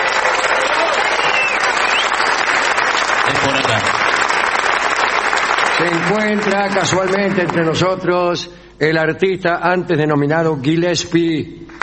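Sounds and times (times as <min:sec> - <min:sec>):
audience ovation: 0:00.0 - 0:07.9
speech: 0:05.9 - 0:11.6.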